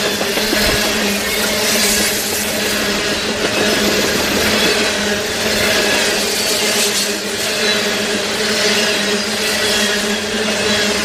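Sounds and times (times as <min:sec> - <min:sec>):
train wheel noise: 0:00.0 - 0:06.4
train running along the tracks rumble: 0:00.0 - 0:11.0.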